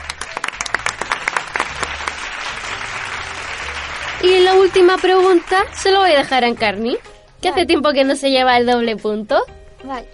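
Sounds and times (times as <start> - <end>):
applause: 0.0 - 7.1
speech: 4.2 - 10.1.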